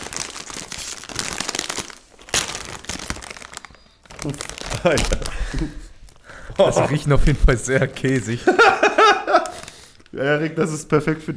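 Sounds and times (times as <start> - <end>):
snack bag ripping: 0.0 - 6.7, 9.3 - 10.2
plastic snack bag crinkling: 0.0 - 6.8, 9.3 - 10.2
speech: 4.2 - 5.9, 6.6 - 9.5, 10.1 - 11.3
laughter: 6.5 - 9.7.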